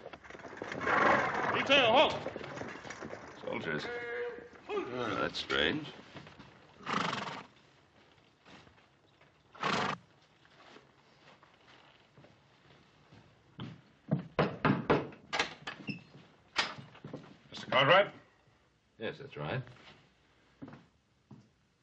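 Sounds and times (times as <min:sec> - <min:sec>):
hooves clip-clopping: 0:00.0 - 0:14.5
horses neighing: 0:00.4 - 0:05.4, 0:06.8 - 0:07.6, 0:09.5 - 0:10.0
speech: 0:01.5 - 0:02.4, 0:03.5 - 0:04.1, 0:04.9 - 0:06.0, 0:17.8 - 0:18.2, 0:19.0 - 0:20.0.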